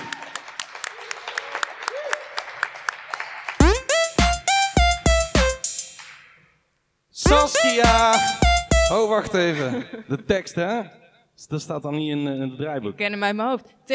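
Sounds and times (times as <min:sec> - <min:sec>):
audience rhythmic clapping: 0:00.0 - 0:06.3, 0:07.3 - 0:09.2
speech: 0:07.4 - 0:13.9.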